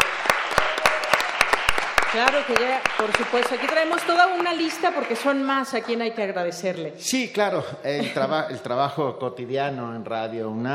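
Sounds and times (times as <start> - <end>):
audience applause: 0.0 - 6.0
speech: 2.1 - 10.7.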